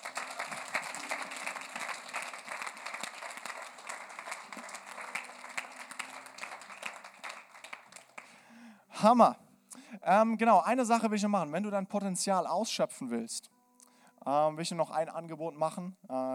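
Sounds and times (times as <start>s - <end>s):
audience applause: 0.0s - 8.4s
speech: 9.0s - 9.4s, 10.0s - 13.6s, 14.3s - 16.3s.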